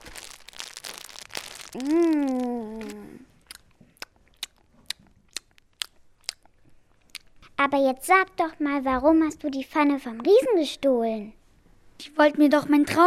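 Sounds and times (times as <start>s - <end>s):
chewing crunchy biscuits: 0.0s - 7.5s
speech: 1.7s - 2.9s, 7.6s - 11.4s, 12.0s - 13.0s
person humming mmm: 1.7s - 3.6s.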